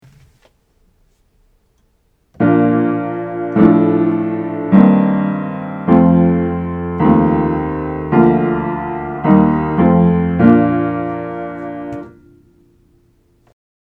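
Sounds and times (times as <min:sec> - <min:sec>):
triads in inversion: 0:02.4 - 0:12.6.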